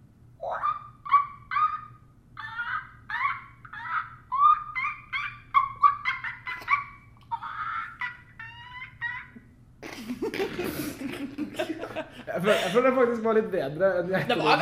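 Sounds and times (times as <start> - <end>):
person imitating a tired monkey with breathy hooting whoops: 0.4 - 9.5
laughter: 2.4 - 13.1, 14.1 - 14.6
speech: 12.4 - 14.6.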